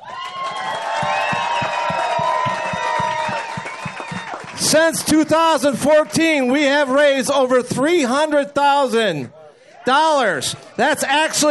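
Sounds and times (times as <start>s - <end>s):
crowd applause: 0.0s - 6.1s
speech: 4.7s - 11.4s.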